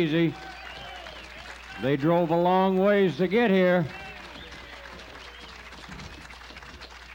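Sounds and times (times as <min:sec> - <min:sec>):
speech: 0:00.0 - 0:00.5, 0:01.8 - 0:04.0
audience applause: 0:00.0 - 0:07.1.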